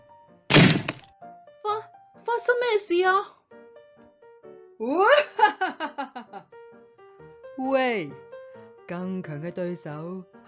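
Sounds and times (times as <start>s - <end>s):
tree branch snapping underfoot: 0.5s - 1.1s
speech: 1.6s - 3.4s, 4.8s - 6.0s, 7.6s - 8.2s, 8.9s - 10.4s.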